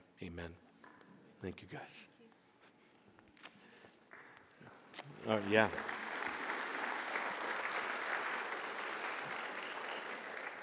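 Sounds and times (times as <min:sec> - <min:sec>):
speech: 0:00.2 - 0:00.7, 0:01.4 - 0:02.2, 0:05.0 - 0:06.0
audience applause: 0:05.2 - 0:10.6.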